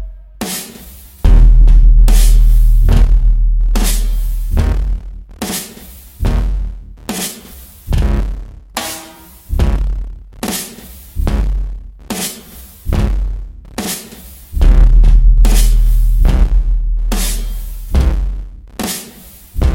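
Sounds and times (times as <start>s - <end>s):
808 bass: 1.2s - 5.2s, 9.5s - 10.1s, 11.2s - 11.7s, 12.9s - 13.4s, 14.6s - 18.6s, 19.6s - 19.7s.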